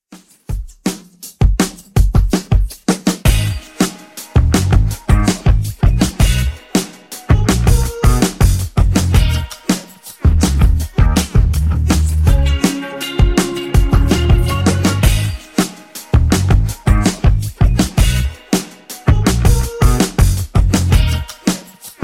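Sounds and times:
clean funk remix: 0.1s - 22.0s.

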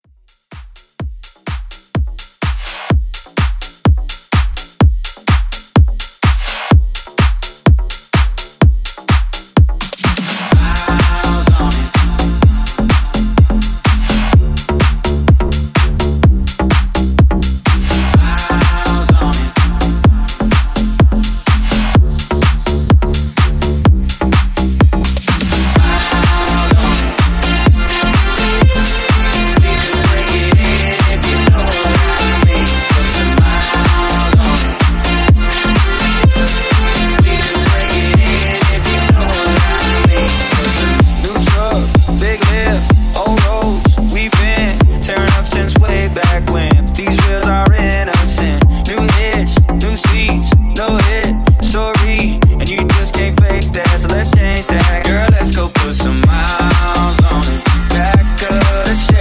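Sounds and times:
club dance music at 126 BPM: 0.5s - 59.1s.

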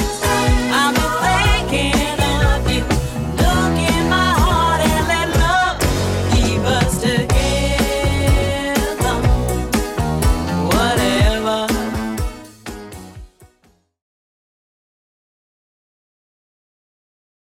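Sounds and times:
70s-style electronic dance track: 0.0s - 13.6s.

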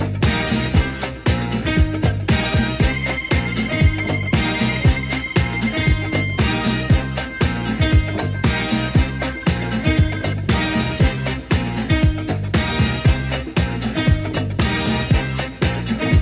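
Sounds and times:
clean 117bpm drum beat: 0.0s - 16.2s.

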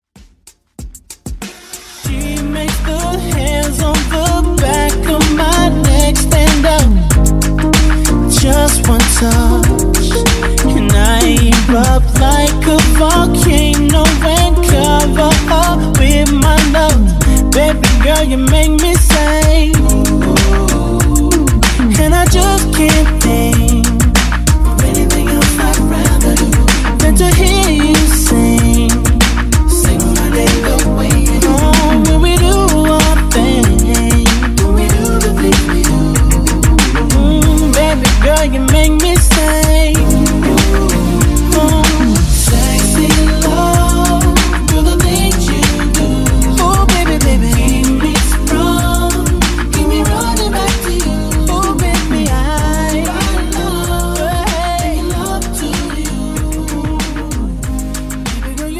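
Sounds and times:
R&B intro outro at 95 bpm: 0.0s - 58.7s.

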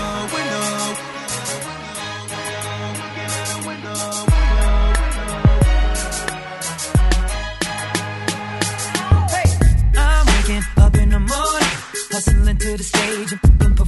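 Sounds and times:
drum beat at 90 BPM: 4.3s - 6.4s, 7.0s - 13.8s.

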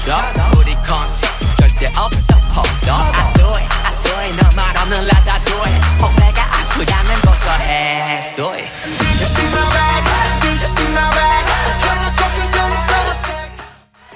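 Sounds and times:
Top40 pop drum beat: 0.0s - 7.7s, 9.0s - 13.5s.

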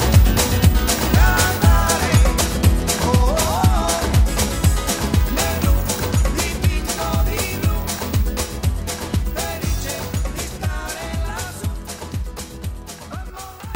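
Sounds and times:
1990s music medley: 0.0s - 10.8s.

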